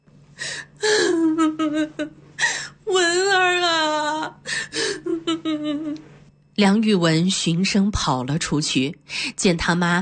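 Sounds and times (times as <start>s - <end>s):
woman crying, sorrowful mixed with joy: 0.4s - 6.0s
speech: 1.7s - 2.2s, 6.6s - 10.0s.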